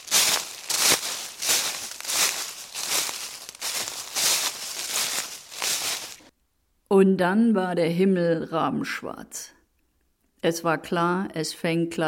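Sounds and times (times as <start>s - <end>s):
footsteps crunching through dry leaves: 0.0s - 6.3s
speech: 7.0s - 9.6s, 10.4s - 12.0s.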